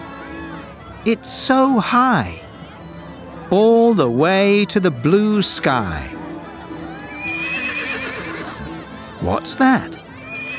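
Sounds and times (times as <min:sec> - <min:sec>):
speech: 0:01.0 - 0:02.4, 0:03.5 - 0:06.2, 0:09.2 - 0:10.0
horse neighing at an amusement fair: 0:07.1 - 0:08.7, 0:10.2 - 0:10.5.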